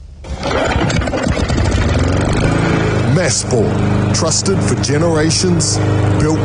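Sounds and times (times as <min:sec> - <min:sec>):
lawn mower engine starting and running: 0:00.2 - 0:06.4
speech: 0:03.3 - 0:06.4.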